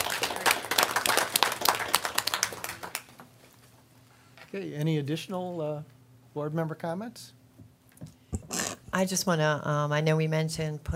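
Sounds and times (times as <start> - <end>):
applause: 0.0 - 3.3
speech: 4.5 - 7.4, 9.0 - 10.9.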